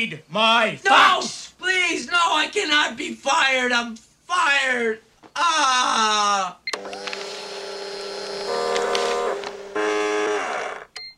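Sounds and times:
speech: 0:00.0 - 0:06.6
fax machines transmitting: 0:06.7 - 0:11.1.

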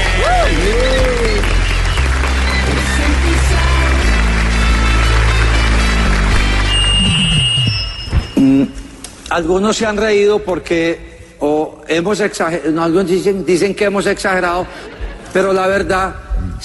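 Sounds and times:
whistles and cheers: 0:00.0 - 0:03.1
audience applause: 0:00.0 - 0:07.8
music playing: 0:00.0 - 0:08.9
speech: 0:09.4 - 0:16.6.

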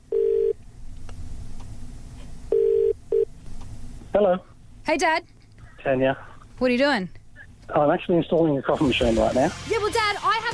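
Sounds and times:
faint hum: 0:00.0 - 0:10.5
ringback tone of an outgoing phone call: 0:00.1 - 0:00.6, 0:02.5 - 0:03.3
speech: 0:04.2 - 0:10.5.

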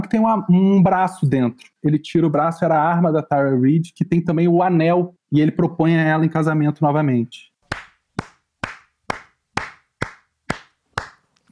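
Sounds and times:
speech: 0:00.1 - 0:07.5
hand clapping: 0:07.7 - 0:11.5.

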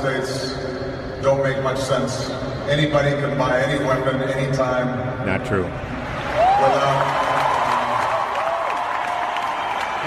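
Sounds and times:
speech: 0:00.0 - 0:06.0, 0:06.6 - 0:07.2
audience applause: 0:06.0 - 0:10.0.

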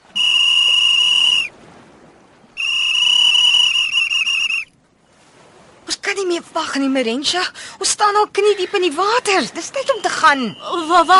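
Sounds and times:
whistles being blown for attention: 0:00.0 - 0:01.5, 0:02.5 - 0:04.7, 0:09.8 - 0:11.1
speech: 0:06.4 - 0:11.1.

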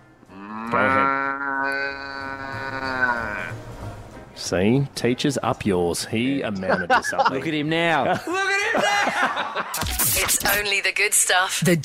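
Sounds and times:
person imitating a cow's loud moo: 0:00.3 - 0:03.6
speech: 0:00.7 - 0:01.2, 0:04.4 - 0:11.8
laughter: 0:06.5 - 0:10.6.

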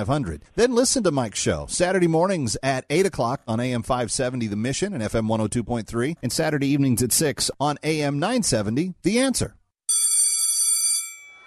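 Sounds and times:
speech: 0:00.0 - 0:09.6
school bell ringing: 0:09.9 - 0:11.4.

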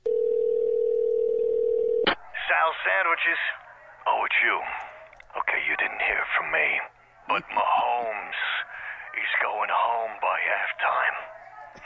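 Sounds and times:
telephone dial tone of an outgoing call: 0:00.0 - 0:02.1
speech: 0:02.8 - 0:08.5, 0:09.2 - 0:11.8.

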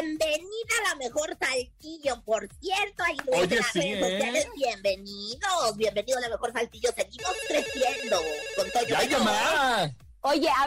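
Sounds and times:
speech: 0:00.0 - 0:10.6
telephone ringing with melodic ringtone for incoming call: 0:07.2 - 0:09.7.

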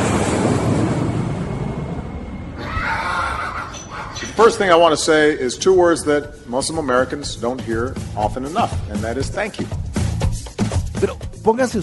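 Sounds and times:
steady rushing wind-like noise: 0:00.0 - 0:05.6
donkey braying: 0:02.6 - 0:04.9
speech: 0:04.4 - 0:09.8, 0:11.0 - 0:11.8.

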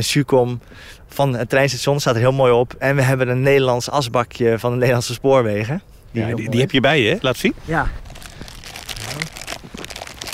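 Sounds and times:
speech: 0:00.0 - 0:08.2
plastic bag crinkling while unpacking a find: 0:07.9 - 0:10.3
voice murmuring: 0:09.0 - 0:09.4.

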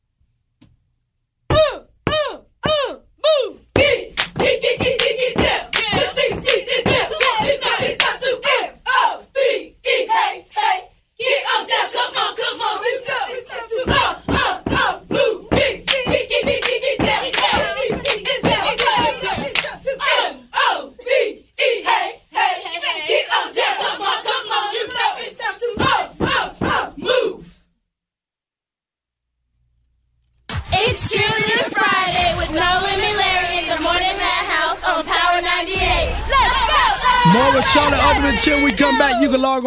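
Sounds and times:
cheerleading squad chanting: 0:01.6 - 0:27.5, 0:30.7 - 0:39.5
cheer squad claps and stomps: 0:03.8 - 0:08.3, 0:13.9 - 0:19.9, 0:30.5 - 0:34.6, 0:36.9 - 0:39.0.

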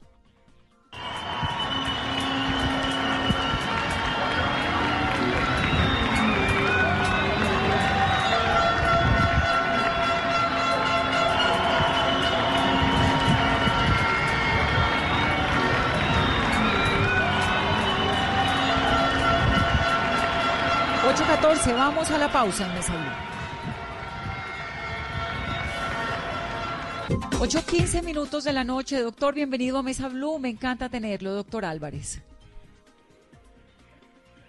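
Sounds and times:
audience applause and cheering: 0:00.9 - 0:27.8
speech: 0:21.6 - 0:23.2, 0:27.2 - 0:32.3.

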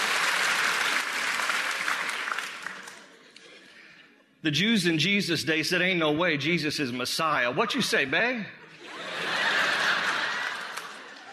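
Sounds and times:
audience clapping: 0:00.0 - 0:03.5, 0:09.5 - 0:11.3
speech: 0:04.4 - 0:08.6
laughter: 0:08.6 - 0:11.3.

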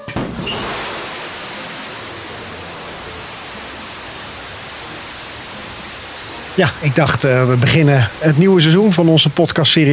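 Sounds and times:
New Shepard rocket launch roar: 0:00.1 - 0:05.0
speech: 0:06.6 - 0:09.9.

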